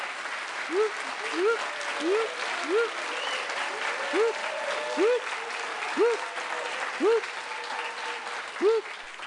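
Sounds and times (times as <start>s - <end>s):
applause from applause meter test: 0.0s - 9.2s.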